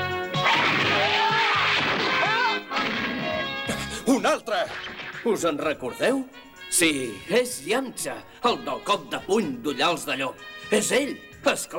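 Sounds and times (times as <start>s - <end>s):
doors bursting open with a crash: 0.4s - 3.6s
speech: 4.2s - 11.7s.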